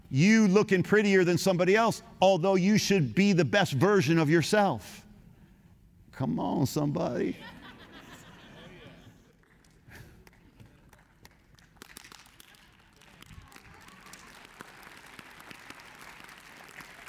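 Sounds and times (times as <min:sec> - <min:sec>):
speech: 0:00.1 - 0:05.0, 0:06.2 - 0:07.6
laughter: 0:07.2 - 0:10.9
audience applause: 0:09.4 - 0:17.0.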